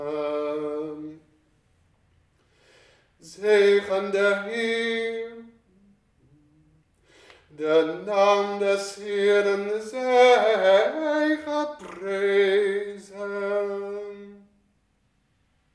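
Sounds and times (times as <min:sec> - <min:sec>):
tenor singing preces: 0:00.0 - 0:01.3, 0:03.2 - 0:06.8, 0:07.5 - 0:14.5.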